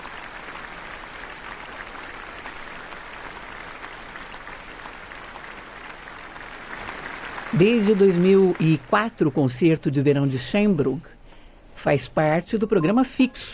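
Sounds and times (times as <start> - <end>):
concert audience applause: 0.0 - 9.6
speech: 7.5 - 11.2, 11.8 - 13.5.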